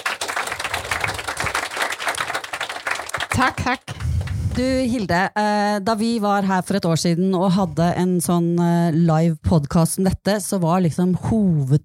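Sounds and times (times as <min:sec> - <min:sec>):
audience applause: 0:00.0 - 0:04.3
speech: 0:03.4 - 0:04.0, 0:04.6 - 0:11.8.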